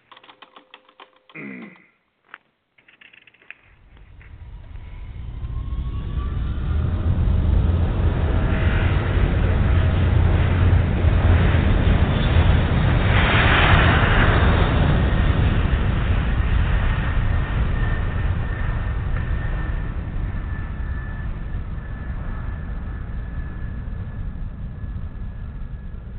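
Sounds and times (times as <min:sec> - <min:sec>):
sharp clicks: 0:00.0 - 0:03.8
Eastern airliner jet roar on its takeoff roll at Miami: 0:04.0 - 0:26.1.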